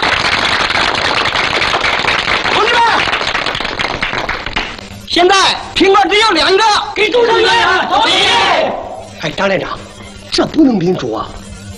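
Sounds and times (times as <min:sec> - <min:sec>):
voice rising above clapping: 0:00.0 - 0:04.8
group applause: 0:00.0 - 0:05.0
speech: 0:05.2 - 0:09.8, 0:10.4 - 0:11.4.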